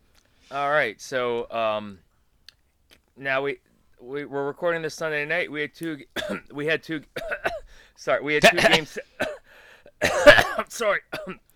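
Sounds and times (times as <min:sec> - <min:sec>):
speech: 0:00.5 - 0:02.1, 0:03.2 - 0:07.4, 0:08.0 - 0:09.3, 0:10.0 - 0:11.5
throat clearing: 0:08.4 - 0:09.4, 0:10.0 - 0:11.4.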